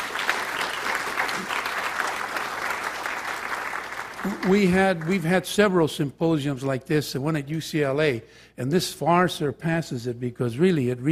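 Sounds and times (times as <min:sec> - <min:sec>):
audience applause at a symposium: 0:00.0 - 0:05.3
speech: 0:04.2 - 0:11.1.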